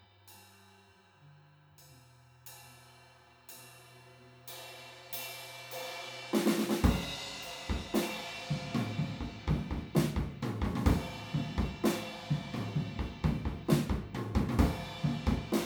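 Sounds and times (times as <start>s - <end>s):
drums recorded with an omni stereo PZM microphone: 4.5s - 15.6s.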